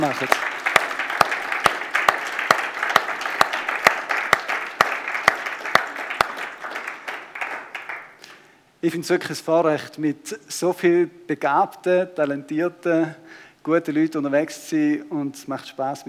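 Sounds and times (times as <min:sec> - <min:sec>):
speech: 0:00.0 - 0:00.5, 0:08.8 - 0:16.0
audience applause: 0:00.0 - 0:08.2.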